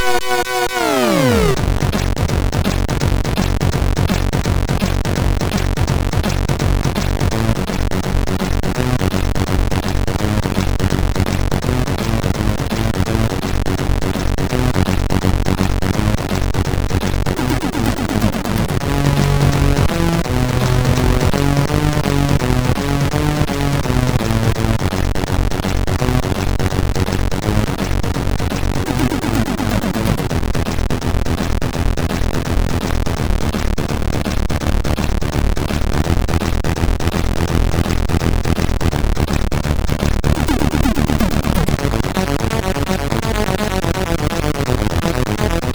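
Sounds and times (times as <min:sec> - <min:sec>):
MOS 6581R2 SID chip music: 0:00.0 - 0:45.7.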